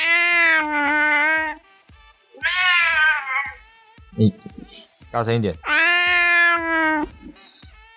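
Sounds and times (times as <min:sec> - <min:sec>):
cat meowing: 0:00.0 - 0:01.6, 0:02.4 - 0:04.8, 0:05.6 - 0:07.6
speech: 0:04.2 - 0:05.7.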